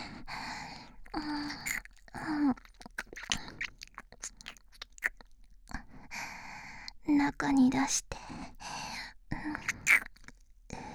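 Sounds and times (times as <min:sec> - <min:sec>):
ear licking: 0:00.9 - 0:05.6, 0:09.4 - 0:10.5.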